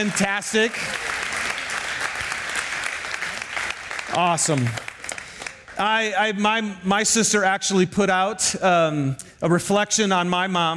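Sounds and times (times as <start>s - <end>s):
speech: 0.0s - 1.1s, 4.1s - 4.9s, 5.8s - 10.7s
audience round of applause: 0.0s - 5.8s.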